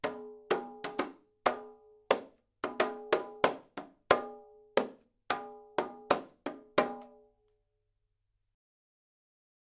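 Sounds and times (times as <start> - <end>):
hand drum: 0.0 - 7.2.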